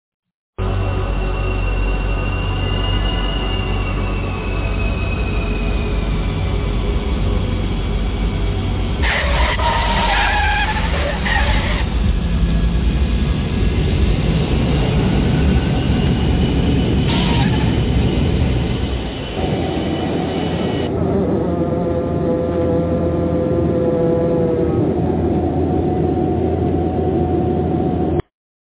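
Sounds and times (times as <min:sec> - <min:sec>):
whining tones: 0:00.6 - 0:28.2
landing airplane engine roar: 0:00.6 - 0:28.3
harsh hiss and screech: 0:01.2 - 0:12.1, 0:15.2 - 0:20.9.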